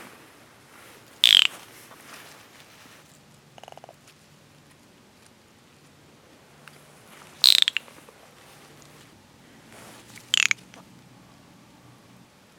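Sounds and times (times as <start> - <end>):
California giant salamander Dicamptodon ensatus rasping calls: 1.2 - 1.6, 7.4 - 8.0, 10.1 - 10.7.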